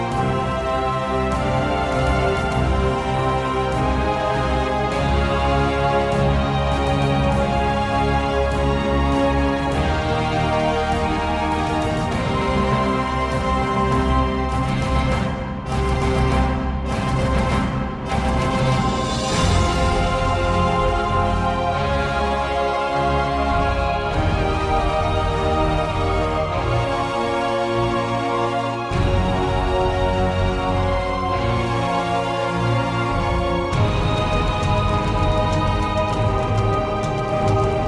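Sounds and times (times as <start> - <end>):
fight music: 0.0 - 37.8.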